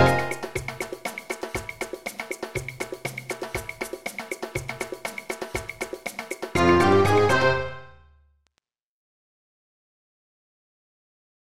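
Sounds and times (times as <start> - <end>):
funky percussion: 0.0 - 7.6.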